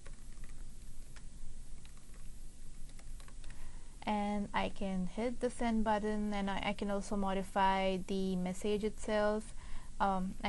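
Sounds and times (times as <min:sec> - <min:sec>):
typing on a computer keyboard into an email: 0:00.0 - 0:02.3, 0:02.9 - 0:03.6
speech: 0:04.1 - 0:10.4.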